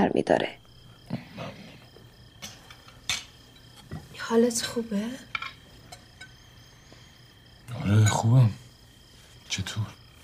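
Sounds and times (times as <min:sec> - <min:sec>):
speech: 0:00.1 - 0:01.6, 0:04.3 - 0:05.3, 0:07.7 - 0:08.6, 0:09.5 - 0:10.0
kebab dish plate and cutlery clinking: 0:02.4 - 0:04.1, 0:05.2 - 0:06.4.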